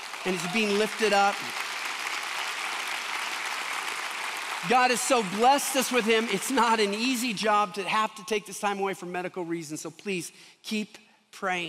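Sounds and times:
audience clapping: 0.0 - 7.8
speech: 0.2 - 1.6, 4.6 - 11.6.

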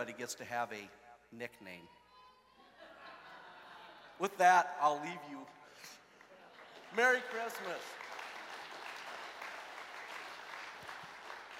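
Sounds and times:
speech: 0.0 - 2.0, 4.2 - 5.9, 6.9 - 8.0
laughter: 2.5 - 4.4
crowd applause: 6.1 - 11.5.

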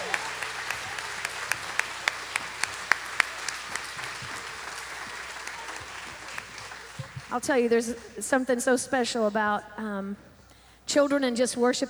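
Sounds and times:
audience applauding in a large room: 0.0 - 7.5
speech: 7.3 - 10.3, 10.9 - 11.8.

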